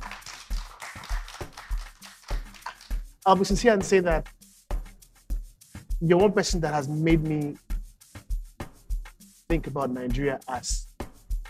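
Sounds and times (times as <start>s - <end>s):
audience clapping: 0.0s - 3.1s
speech: 3.2s - 4.4s, 6.0s - 7.6s, 9.5s - 10.9s.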